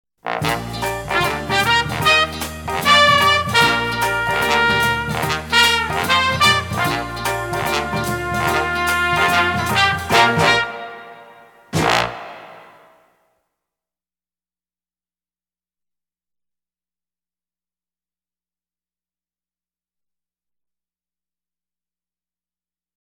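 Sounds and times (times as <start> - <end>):
horns: 0.2 - 13.2.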